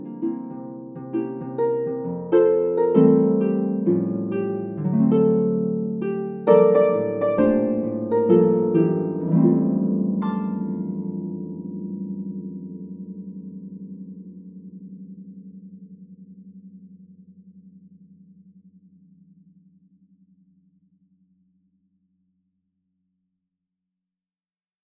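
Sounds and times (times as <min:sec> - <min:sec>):
MIDI Christmas carol: 0:00.0 - 0:13.1.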